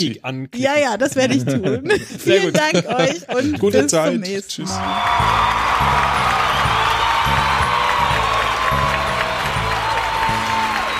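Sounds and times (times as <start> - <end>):
speech: 0.0 - 6.2
crowd cheering and clapping: 4.7 - 10.9
whoops and shouts: 4.8 - 10.9.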